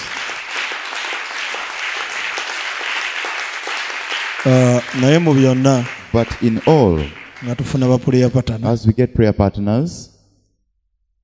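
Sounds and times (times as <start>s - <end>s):
crowd clapping hands for God: 0.0s - 8.7s
speech: 4.4s - 10.1s.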